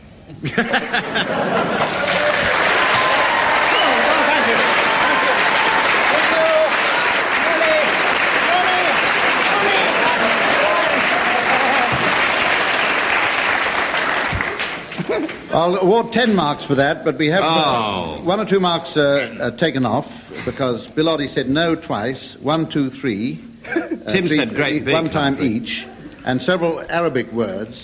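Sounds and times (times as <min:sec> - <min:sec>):
speech: 0:00.3 - 0:02.0, 0:15.6 - 0:27.8
laughter: 0:00.3 - 0:06.6, 0:09.4 - 0:12.4, 0:14.9 - 0:15.5, 0:23.6 - 0:26.1
audience applause: 0:00.8 - 0:15.5.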